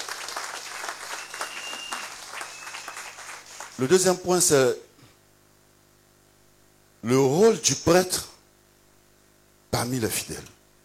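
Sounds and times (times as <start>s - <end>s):
church congregation applauding loudly: 0.0s - 4.2s
speech: 3.8s - 4.9s, 7.0s - 8.3s, 9.8s - 10.6s.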